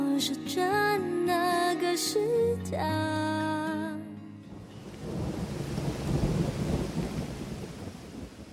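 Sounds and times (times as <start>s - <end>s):
speech: 0.2s - 3.8s
dense steady rain in a midnight thunderstorm: 4.5s - 8.5s
rolling thunder rumble: 4.6s - 8.5s.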